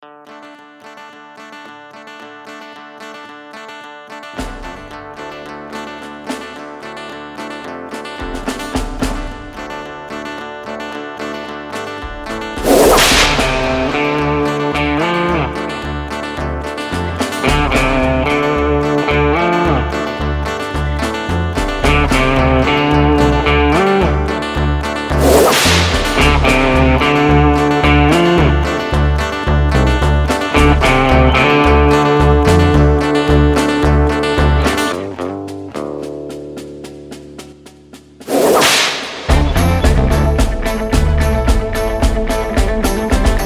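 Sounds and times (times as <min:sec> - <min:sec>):
instrumental music: 0:00.0 - 0:43.4.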